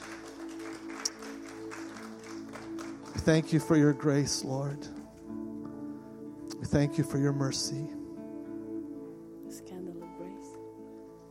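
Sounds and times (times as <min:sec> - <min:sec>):
audience applause: 0:00.0 - 0:03.8
speech: 0:03.2 - 0:04.9, 0:06.7 - 0:08.0.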